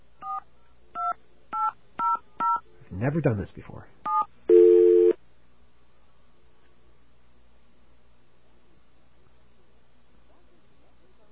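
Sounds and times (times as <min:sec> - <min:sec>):
speech: 0:02.9 - 0:04.0
telephone dialing tones: 0:04.1 - 0:05.2.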